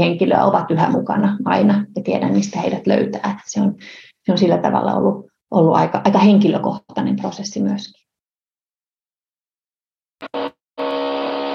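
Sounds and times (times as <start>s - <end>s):
speech: 0.0s - 8.0s
drilling upstairs: 10.2s - 11.5s.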